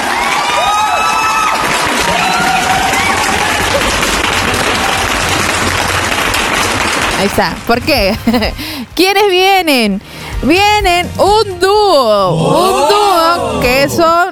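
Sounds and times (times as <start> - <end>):
audience applause and cheering: 0.0 - 7.8
speech: 7.2 - 14.3.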